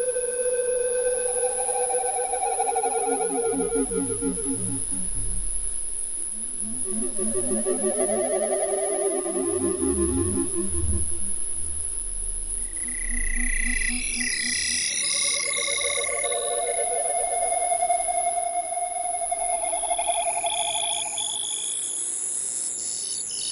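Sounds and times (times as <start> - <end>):
high whine: 0.2 - 21.8
space-cricket pulsing, warbling tones: 1.1 - 17.6.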